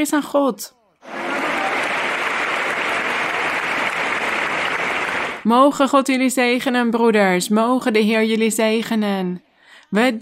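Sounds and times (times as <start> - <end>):
speech: 0.0 - 1.2, 5.4 - 10.2
audience applause: 1.0 - 5.5.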